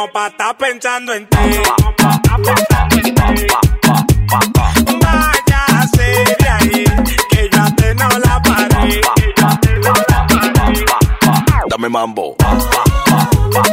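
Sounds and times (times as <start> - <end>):
Latin pop music snippets: 0.0 - 13.7.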